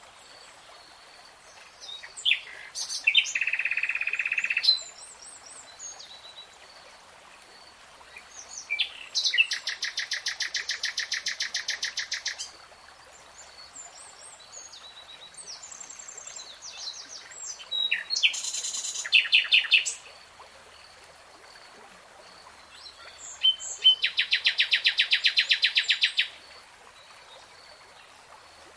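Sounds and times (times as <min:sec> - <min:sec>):
nightingale song: 0:01.8 - 0:06.6, 0:08.1 - 0:12.6, 0:13.4 - 0:20.2, 0:22.7 - 0:28.1.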